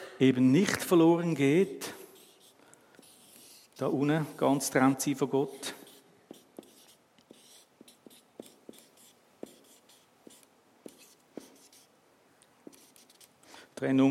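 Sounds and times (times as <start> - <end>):
speech: 0.2 - 1.9, 3.8 - 5.7, 13.8 - 14.1
pen scratching on paper while drawing: 1.6 - 3.9, 5.6 - 11.9, 12.7 - 13.3.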